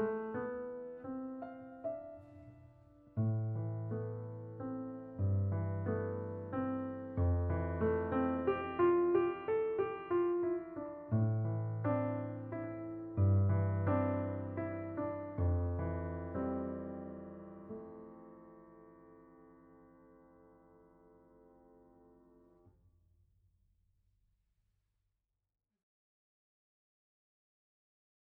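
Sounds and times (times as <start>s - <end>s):
piano: 0.0s - 22.7s.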